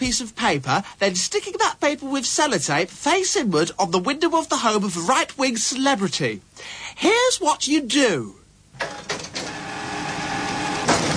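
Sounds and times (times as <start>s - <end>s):
speech: 0.0s - 9.1s
photocopier running: 8.8s - 11.1s.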